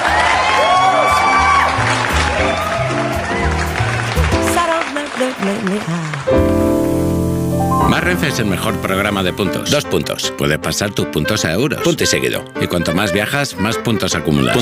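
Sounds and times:
loud bright music: 0:00.0 - 0:04.7, 0:06.3 - 0:11.3
audience applauding and cheering: 0:00.0 - 0:09.4
speech: 0:05.4 - 0:06.5, 0:07.9 - 0:14.6.

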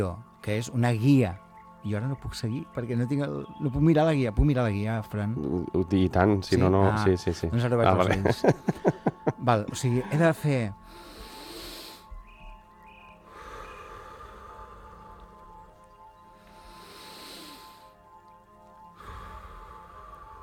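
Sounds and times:
speech: 0:00.0 - 0:11.1
laughter: 0:07.8 - 0:10.3
deep conscious breathing exercise: 0:10.8 - 0:12.4, 0:13.1 - 0:18.1, 0:18.9 - 0:20.4.

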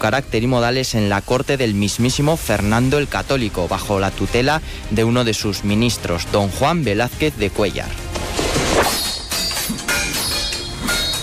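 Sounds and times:
speech: 0:00.0 - 0:08.1
swords clashing sound effect: 0:08.8 - 0:11.2.

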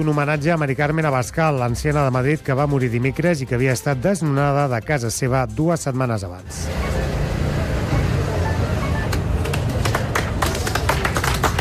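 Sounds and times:
speech: 0:00.0 - 0:07.1
hushed crowd murmur: 0:06.6 - 0:11.5
applause from many people: 0:09.4 - 0:11.5.

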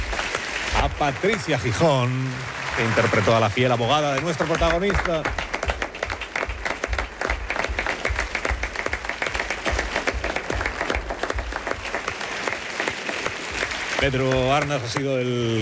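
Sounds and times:
audience applause: 0:00.0 - 0:15.5
speech: 0:01.0 - 0:05.4, 0:14.0 - 0:15.5.

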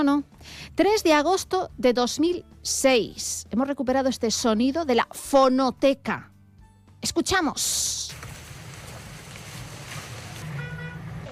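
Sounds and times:
speech: 0:00.0 - 0:06.3, 0:07.0 - 0:08.3
crackling flames of a forest fire: 0:08.1 - 0:11.2.

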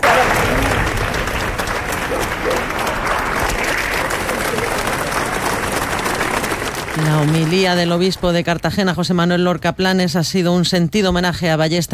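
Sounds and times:
faint murmur of voices: 0:00.0 - 0:07.6
large crowd applauding outdoors at a funeral procession: 0:00.0 - 0:09.1
speech: 0:07.0 - 0:11.9.

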